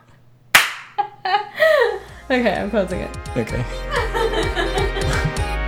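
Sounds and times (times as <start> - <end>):
single hand clap: 0.6 - 1.0
speech: 2.3 - 4.5
laughter: 3.8 - 5.6.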